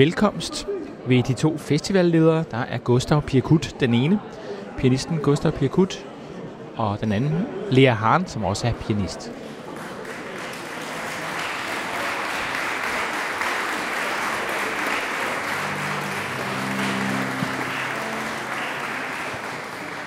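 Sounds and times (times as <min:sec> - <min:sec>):
speech: 0:00.0 - 0:06.1, 0:06.8 - 0:09.4
audience applause: 0:09.5 - 0:20.0.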